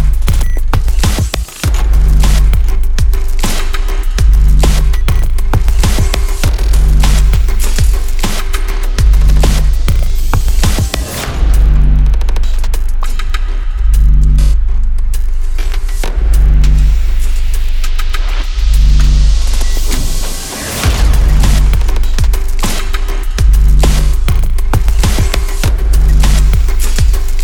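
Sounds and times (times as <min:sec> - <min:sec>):
sport glitch trailer music: 0:00.0 - 0:27.4.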